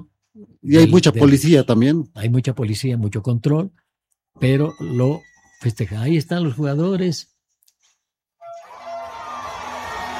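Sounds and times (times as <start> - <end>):
speech: 0.4 - 3.8, 4.4 - 7.3
crowd applauding: 8.5 - 10.1.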